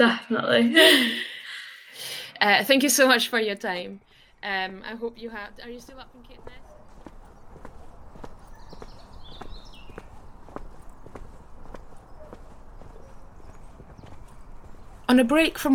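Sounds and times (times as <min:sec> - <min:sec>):
speech: 0:00.0 - 0:01.3, 0:02.0 - 0:06.7, 0:15.1 - 0:15.7
footsteps crunching through woodland of beech, oak and pine: 0:05.1 - 0:15.7.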